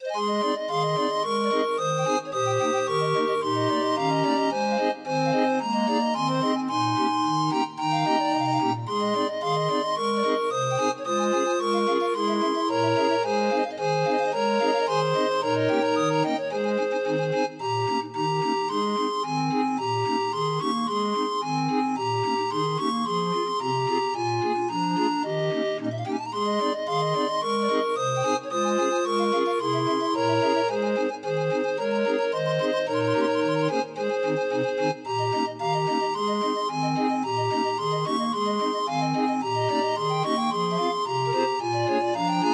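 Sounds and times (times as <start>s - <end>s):
happy 31-note barrel organ melody: 0.0s - 42.5s.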